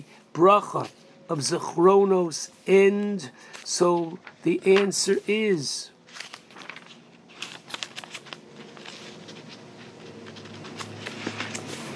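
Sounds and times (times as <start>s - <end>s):
speech: 0.0s - 5.9s
prayer book pages being turned with two pages stuck together: 3.5s - 11.9s.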